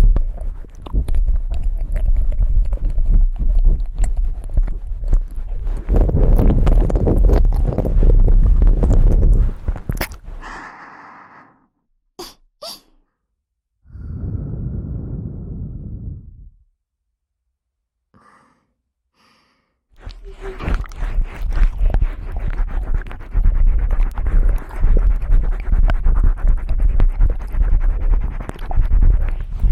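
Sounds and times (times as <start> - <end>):
wet mouth clicks and smacks of ASMR ear eating: 0.0 - 10.3, 20.0 - 29.7.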